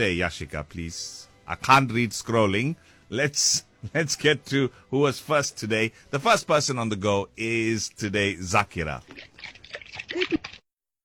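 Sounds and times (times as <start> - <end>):
speech: 0.0 - 9.3
water sloshing inside a shaken coconut: 8.8 - 10.6.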